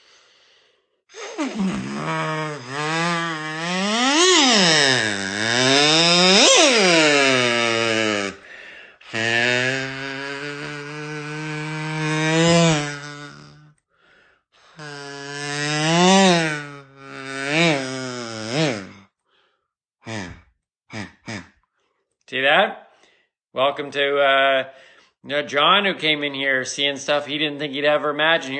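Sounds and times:
buzzy kazoo imitating a speeding car: 0.0 - 21.7
speech: 1.4 - 2.8, 23.7 - 28.5.

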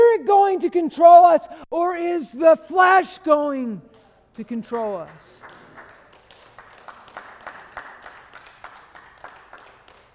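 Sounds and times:
speech: 0.5 - 5.6
audience rhythmic clapping: 3.9 - 10.1.

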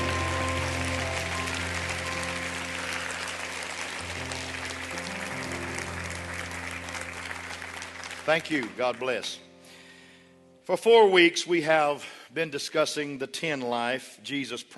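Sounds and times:
audience applauding: 0.0 - 9.2
speech: 8.3 - 9.4, 10.7 - 14.7.

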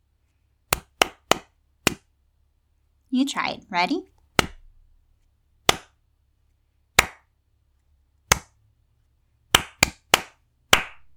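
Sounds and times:
hand clapping in a rhythm game: 0.7 - 2.0, 5.7 - 6.0, 7.0 - 7.3, 8.3 - 8.6, 9.5 - 11.1
speech: 3.1 - 4.1.

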